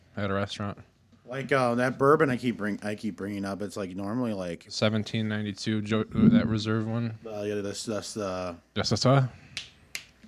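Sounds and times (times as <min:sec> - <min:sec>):
speech: 0:00.2 - 0:09.7
finger snaps: 0:09.5 - 0:10.2.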